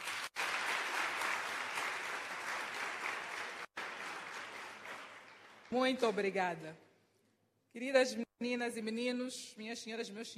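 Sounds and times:
audience applause: 0:00.0 - 0:05.8
speech: 0:05.7 - 0:06.8, 0:07.7 - 0:10.3.

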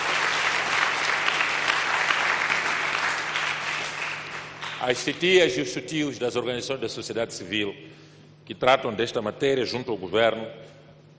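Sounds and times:
audience applause: 0:00.0 - 0:04.9
speech: 0:04.8 - 0:11.1.

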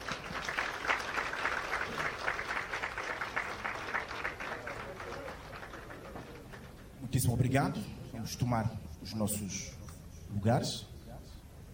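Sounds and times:
audience applause at a ceremony: 0:00.0 - 0:07.0
speech: 0:07.1 - 0:10.9.

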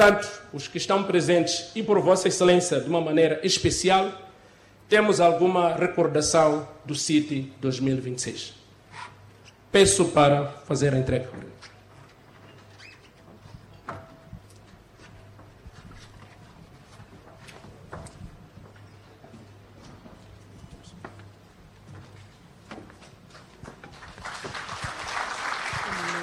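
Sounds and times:
speech: 0:00.0 - 0:04.3, 0:04.9 - 0:09.1, 0:09.7 - 0:11.7
audience applause: 0:23.9 - 0:26.2.

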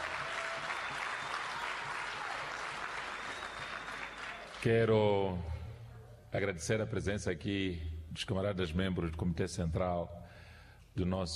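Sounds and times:
audience applause: 0:00.0 - 0:04.7
speech: 0:04.6 - 0:05.6, 0:06.3 - 0:10.3, 0:11.0 - 0:11.3.

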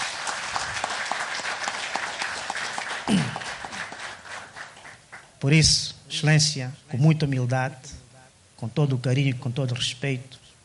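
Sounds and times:
audience applause for the president: 0:00.0 - 0:05.4
speech: 0:03.1 - 0:03.4, 0:05.4 - 0:08.0, 0:08.6 - 0:10.4.

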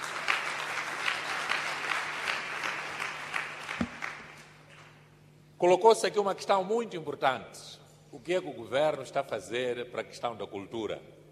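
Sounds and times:
audience applause: 0:00.0 - 0:04.4
speech: 0:05.6 - 0:11.2.

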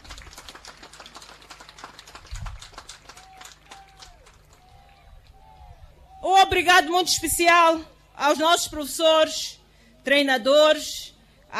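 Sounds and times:
audience applause: 0:00.0 - 0:05.1
speech: 0:06.2 - 0:11.5.

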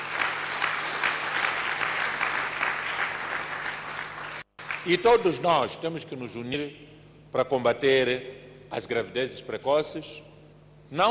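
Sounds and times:
audience applause: 0:00.0 - 0:05.0
speech: 0:04.8 - 0:10.3.

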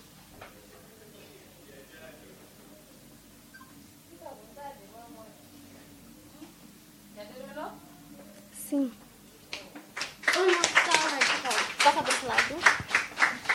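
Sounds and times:
audience clapping: 0:09.5 - 0:13.5.

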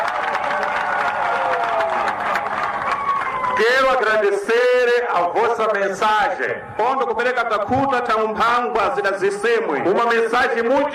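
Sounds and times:
crowd applauding and cheering with shouts: 0:00.0 - 0:04.2
speech: 0:03.6 - 0:10.9.

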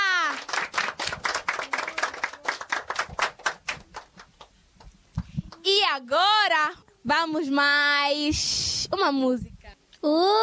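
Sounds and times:
people clapping for a colleague: 0:00.0 - 0:05.7
speech: 0:05.9 - 0:10.4.

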